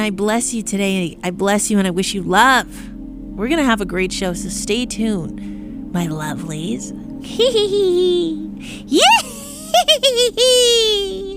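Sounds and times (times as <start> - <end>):
speech: 0.0 - 11.3
voice imitating a witch's cackle: 7.3 - 11.3.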